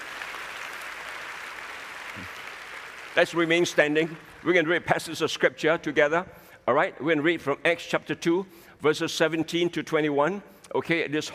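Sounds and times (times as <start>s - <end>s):
audience clapping: 0.0s - 4.9s
speech: 2.2s - 2.4s, 3.1s - 11.3s.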